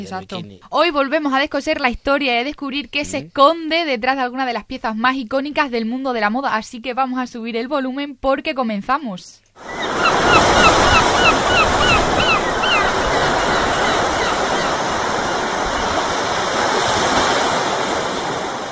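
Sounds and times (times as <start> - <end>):
speech: 0.0 - 10.8
seagull cries: 9.6 - 16.2
steady ocean surf on a beach: 9.6 - 18.7.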